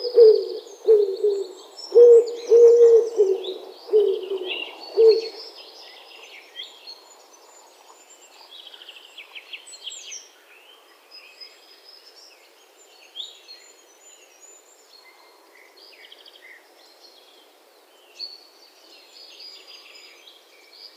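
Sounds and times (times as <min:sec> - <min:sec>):
wood pigeon calling: 0:00.0 - 0:05.4.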